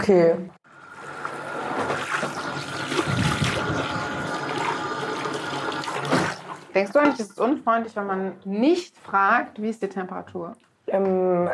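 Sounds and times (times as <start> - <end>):
speech: 0.0 - 0.6, 6.8 - 11.5
running water while washing hair at a hair salon: 0.7 - 7.6.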